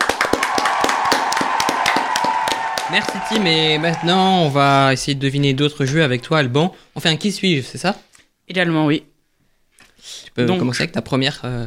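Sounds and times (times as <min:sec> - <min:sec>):
small group clapping in a French quiz segment: 0:00.0 - 0:04.9
speech: 0:02.9 - 0:09.1, 0:10.0 - 0:11.6.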